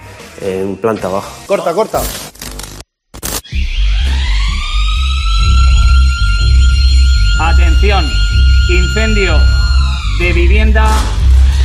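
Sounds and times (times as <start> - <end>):
speech: 0.4 - 2.2, 7.8 - 9.6, 10.2 - 11.2
fire station alarm bell: 3.8 - 10.8.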